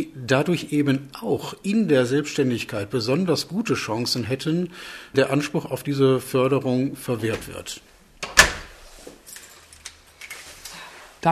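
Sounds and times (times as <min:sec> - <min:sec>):
speech: 0:00.0 - 0:07.9
apartment door being locked with a key: 0:08.2 - 0:08.7.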